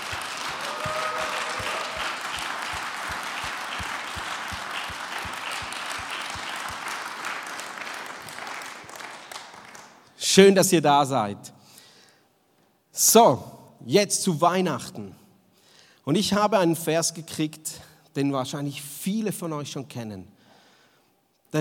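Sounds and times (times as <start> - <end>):
audience applause: 0.0 - 10.0
speech: 10.4 - 11.5, 13.1 - 15.2, 16.0 - 20.4.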